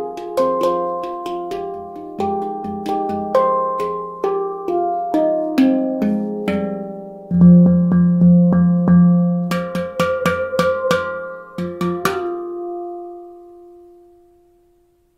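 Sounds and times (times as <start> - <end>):
handpan: 0.0 - 14.9.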